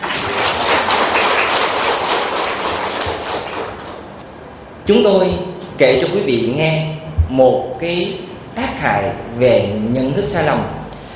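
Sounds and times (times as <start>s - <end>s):
audience round of applause: 0.0s - 4.1s
speech: 4.8s - 10.8s.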